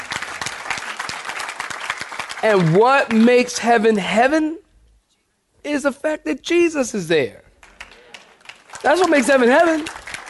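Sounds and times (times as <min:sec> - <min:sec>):
audience clapping hands: 0:00.0 - 0:03.8, 0:07.5 - 0:10.2
speech: 0:02.4 - 0:04.6, 0:05.6 - 0:07.4, 0:08.8 - 0:10.0.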